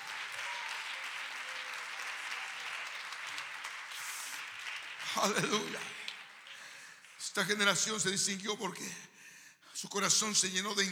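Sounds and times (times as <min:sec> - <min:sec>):
audience applause: 0:00.0 - 0:07.8
speech: 0:05.2 - 0:06.0, 0:07.4 - 0:09.2, 0:09.8 - 0:10.9.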